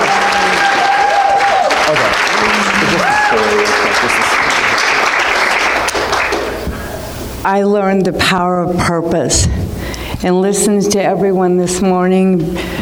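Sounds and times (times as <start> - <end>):
audience applause: 0.0 - 6.6
speech: 1.9 - 4.4, 7.4 - 12.8.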